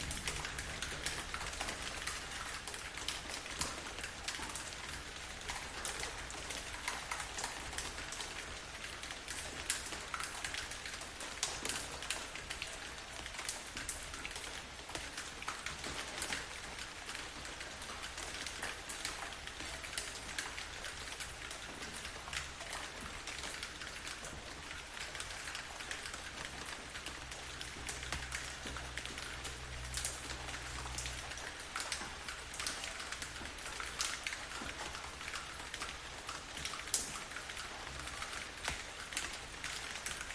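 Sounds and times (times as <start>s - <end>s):
loud rain: 0.0s - 40.3s.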